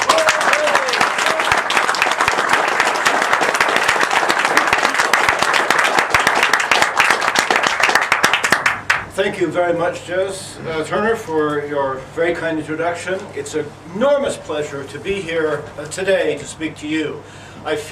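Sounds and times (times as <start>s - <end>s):
audience applause welcoming a guest speaker to a lecture: 0.0s - 9.0s
speech: 9.2s - 17.8s.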